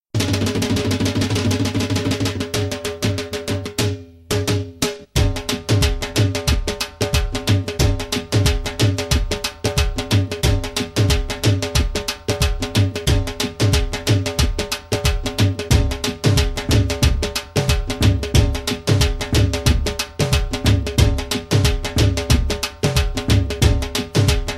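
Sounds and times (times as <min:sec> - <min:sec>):
dhol rhythm: 0:00.1 - 0:24.5.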